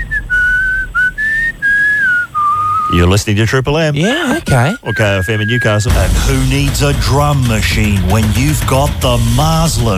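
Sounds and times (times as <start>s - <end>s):
man whistling a slow tune imitating a pan flute: 0.0s - 3.0s, 4.5s - 6.3s
speech: 2.9s - 9.9s.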